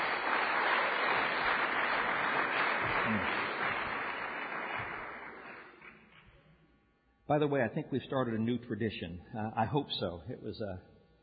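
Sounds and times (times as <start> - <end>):
audience round of applause: 0.0 - 6.0
speech: 7.3 - 10.9.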